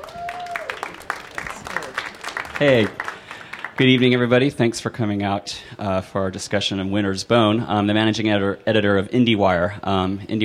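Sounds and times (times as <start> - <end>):
audience applause: 0.0 - 4.4
speech: 2.6 - 3.1, 3.8 - 10.4.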